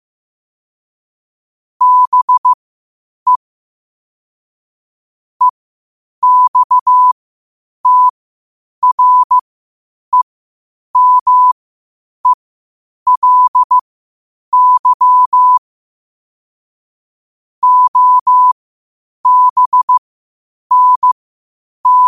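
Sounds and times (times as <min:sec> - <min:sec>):
morse code at 5 wpm: 0:01.8 - 0:02.6, 0:06.2 - 0:07.2, 0:07.8 - 0:08.1, 0:08.8 - 0:09.4, 0:11.0 - 0:11.6, 0:13.1 - 0:13.8, 0:14.6 - 0:15.6, 0:17.6 - 0:18.6, 0:19.2 - 0:20.0, 0:20.7 - 0:21.2, 0:21.8 - 0:22.0.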